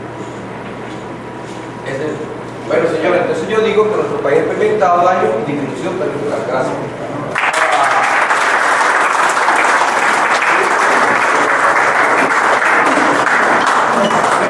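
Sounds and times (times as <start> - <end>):
speech: 1.8 - 7.1
audience applause: 7.3 - 14.4.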